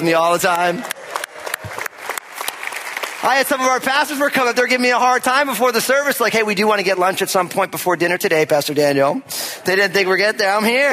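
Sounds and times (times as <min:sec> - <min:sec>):
speech: 0:00.0 - 0:01.0, 0:03.2 - 0:10.9
round of applause: 0:00.2 - 0:04.8.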